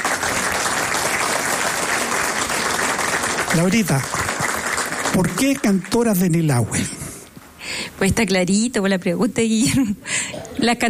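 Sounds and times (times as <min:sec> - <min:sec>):
applause: 0:00.0 - 0:06.5
speech: 0:03.6 - 0:04.2, 0:05.1 - 0:07.0, 0:08.0 - 0:10.8.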